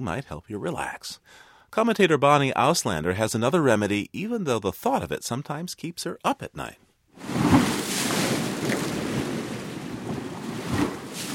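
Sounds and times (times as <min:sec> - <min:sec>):
speech: 0:00.0 - 0:07.6
ocean waves breaking on the shore: 0:07.2 - 0:11.3.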